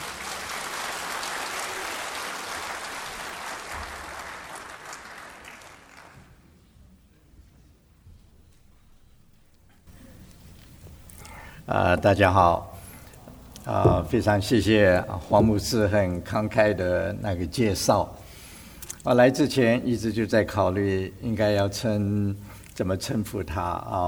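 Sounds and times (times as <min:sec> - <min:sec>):
audience applause welcoming a speaker: 0:00.0 - 0:06.4
speech: 0:11.7 - 0:12.7, 0:13.6 - 0:18.2, 0:19.0 - 0:24.0.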